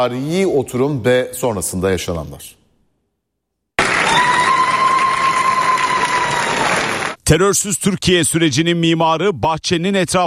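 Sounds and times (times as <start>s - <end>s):
speech: 0.0s - 2.6s, 7.3s - 10.2s
party members clapping to celebrate a new framework law: 3.8s - 7.2s.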